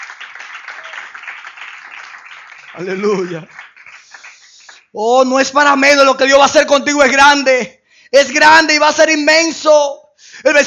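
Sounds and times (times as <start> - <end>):
church congregation applauding during a sermon: 0.0 - 5.0
speech: 2.7 - 3.6, 4.9 - 10.6.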